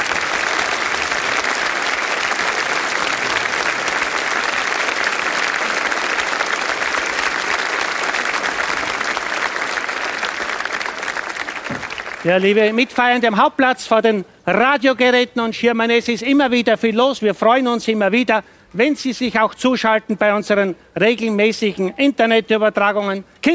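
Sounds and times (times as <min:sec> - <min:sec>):
audience applause: 0:00.0 - 0:12.5
speech: 0:12.2 - 0:23.5.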